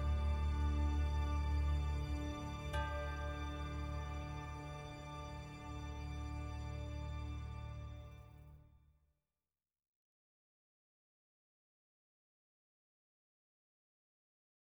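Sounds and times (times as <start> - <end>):
bass: 0.0 - 8.6.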